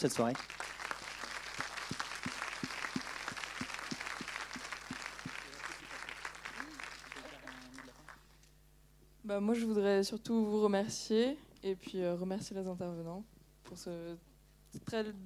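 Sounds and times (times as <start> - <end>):
speech: 0.0 - 0.7, 9.3 - 15.2
audience applause: 0.0 - 8.2.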